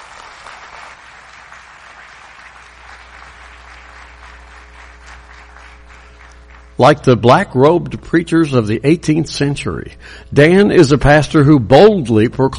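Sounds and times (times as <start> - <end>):
audience applause welcoming a pastor: 0.0 - 6.9
faint low hum: 0.0 - 12.5
speech: 6.8 - 12.5.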